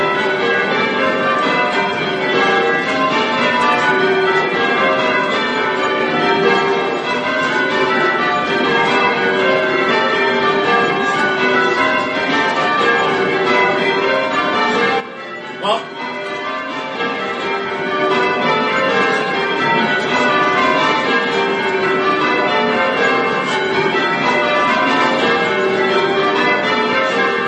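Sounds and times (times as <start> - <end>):
church bells ringing a Grandsire peal: 0.0 - 27.4.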